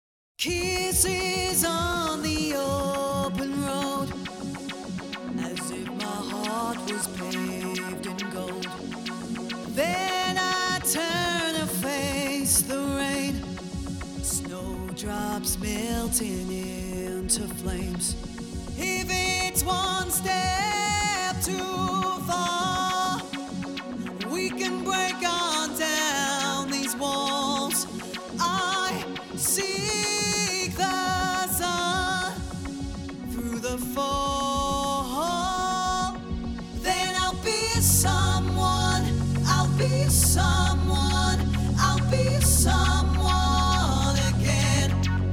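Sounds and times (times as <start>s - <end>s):
chill vocal music at 432 Hz: 0.4s - 45.3s.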